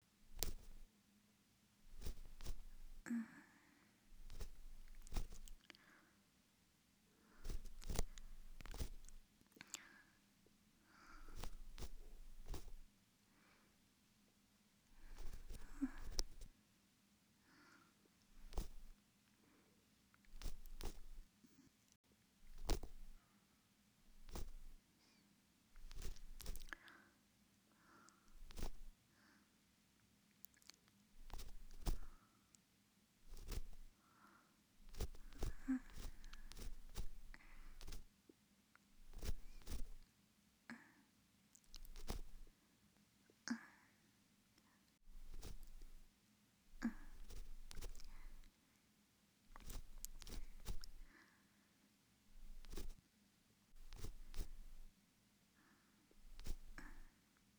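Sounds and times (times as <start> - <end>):
ear cleaning in the right ear: 0.3 - 0.8, 1.9 - 3.0, 4.1 - 5.6, 7.4 - 9.2, 11.2 - 12.9, 15.0 - 16.5, 18.4 - 18.9, 20.3 - 21.2, 22.5 - 23.2, 24.1 - 24.8, 25.8 - 26.8, 28.3 - 29.0, 31.2 - 32.2, 33.3 - 33.9, 34.8 - 38.1, 39.0 - 40.0, 41.7 - 42.5, 45.1 - 46.0, 46.8 - 48.4, 49.5 - 51.1, 52.4 - 53.0, 53.8 - 54.9, 56.2 - 57.0.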